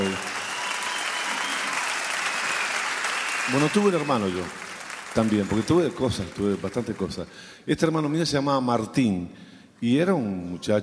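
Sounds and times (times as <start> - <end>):
loud applause for a band: 0.0 - 7.3
speech: 3.5 - 4.6, 5.2 - 10.8.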